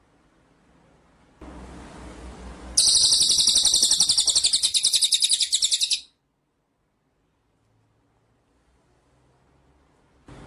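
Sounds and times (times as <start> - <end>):
white-rumped shama song: 2.8 - 6.2.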